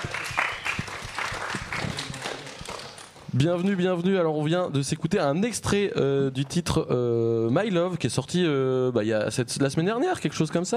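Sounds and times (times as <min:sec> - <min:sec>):
audience applause: 0:00.0 - 0:03.2
speech: 0:03.4 - 0:10.7.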